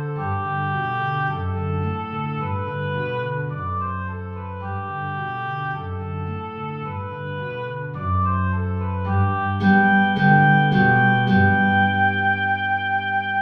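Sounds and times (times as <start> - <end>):
oboe playing andantino: 0.0 - 13.4
guitar playing andantino: 9.3 - 13.4.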